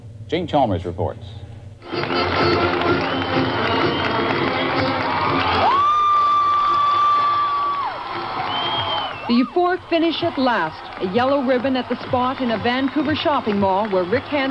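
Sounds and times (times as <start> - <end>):
speech: 0.3 - 3.5, 9.3 - 14.4
large crowd cheering and shouting in streets: 1.8 - 14.4
high whistle or whoop: 3.0 - 9.6.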